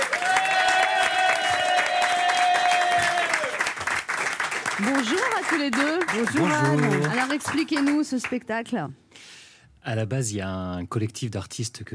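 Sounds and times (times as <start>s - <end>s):
audience applause: 0.0s - 8.1s
speech: 4.8s - 9.0s, 9.8s - 11.9s.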